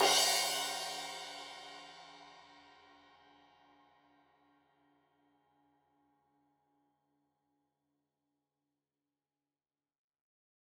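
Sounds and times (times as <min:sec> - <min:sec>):
15 inch crash cymbal edge hit: 0:00.0 - 0:02.3.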